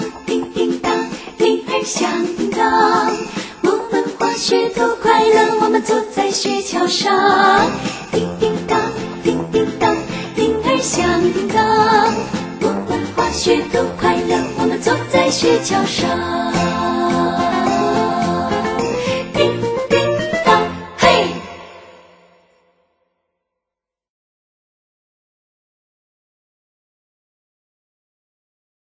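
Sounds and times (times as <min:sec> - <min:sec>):
Christmas song in Chinese: 0:00.0 - 0:22.7.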